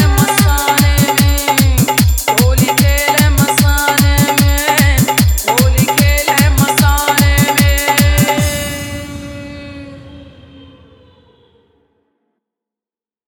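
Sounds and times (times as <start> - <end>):
hard dholak bass dance mix: 0.0 - 10.0.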